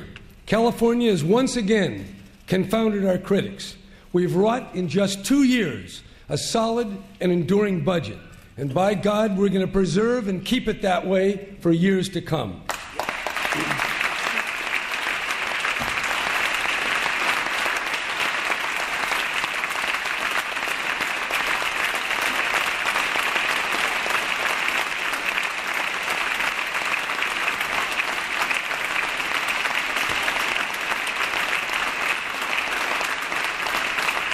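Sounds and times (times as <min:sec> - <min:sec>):
speech: 0:00.5 - 0:12.7
audience applause: 0:12.7 - 0:34.3.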